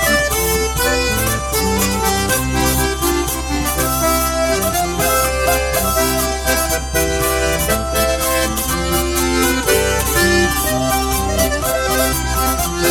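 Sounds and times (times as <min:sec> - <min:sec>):
polka music: 0:00.0 - 0:12.8.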